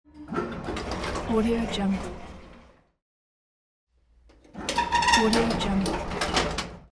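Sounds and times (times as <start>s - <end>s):
old elevator door: 0.1s - 2.9s, 4.3s - 6.9s.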